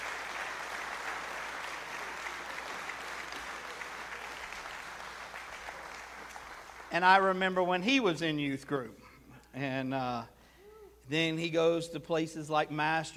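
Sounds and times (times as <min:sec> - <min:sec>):
church congregation clapping to welcome a youth pastor: 0:00.0 - 0:07.7
speech: 0:06.9 - 0:10.4, 0:11.1 - 0:13.1.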